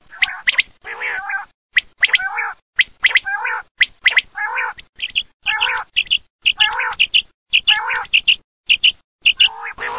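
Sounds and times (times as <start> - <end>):
common quail calling: 0.1 - 9.9.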